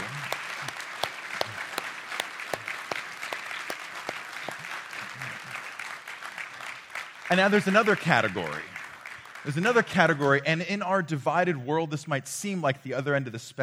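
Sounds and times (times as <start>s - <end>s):
audience applause: 0.0s - 10.1s
speech: 7.3s - 8.7s, 9.4s - 13.6s.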